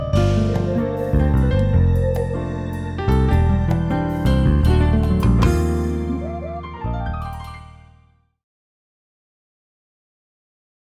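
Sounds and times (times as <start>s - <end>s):
synthesizer session sound: 0.2s - 8.0s.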